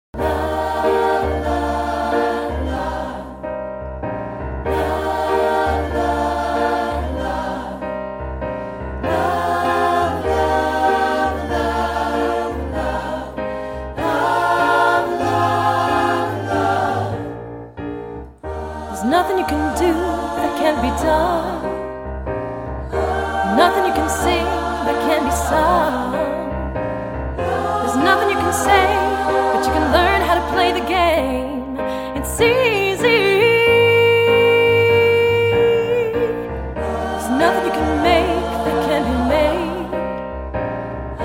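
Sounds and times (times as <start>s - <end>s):
gospel choir singing: 0.2s - 41.2s.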